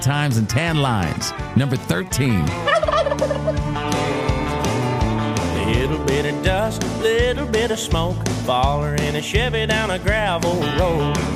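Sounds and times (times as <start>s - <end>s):
speech: 0.0s - 4.8s, 5.7s - 11.3s
turkey gobbling: 2.6s - 3.7s.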